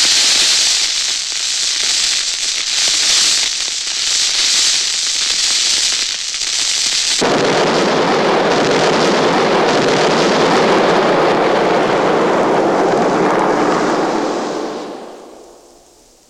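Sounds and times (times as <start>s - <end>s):
fuses burning: 0.0s - 16.2s
explosions: 7.2s - 16.2s.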